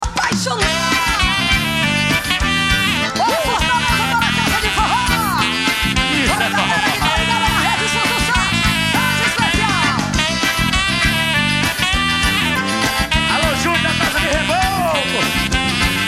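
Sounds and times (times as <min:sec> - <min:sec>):
forró music: 0:00.2 - 0:16.0
laughter: 0:03.2 - 0:10.0.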